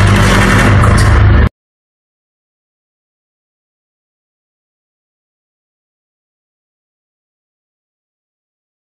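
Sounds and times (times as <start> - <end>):
warning scene background music in Dolby 7.1: 0.0 - 1.5.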